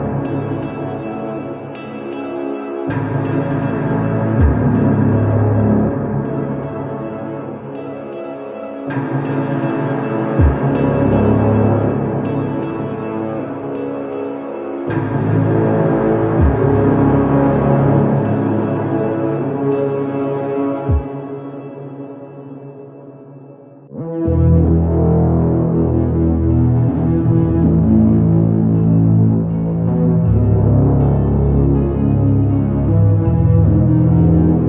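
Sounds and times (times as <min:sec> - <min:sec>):
music: 0:00.0 - 0:34.6.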